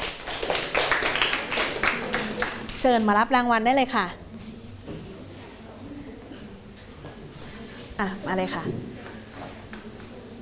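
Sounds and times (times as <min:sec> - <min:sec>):
students clapping hands: 0:00.0 - 0:02.9
speech: 0:02.8 - 0:04.2, 0:08.0 - 0:08.9.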